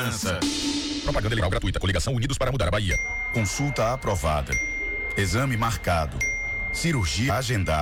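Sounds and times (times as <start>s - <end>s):
speech: 0.0s - 7.8s
bright bell dings signalling a queue moving forward: 2.9s - 7.8s.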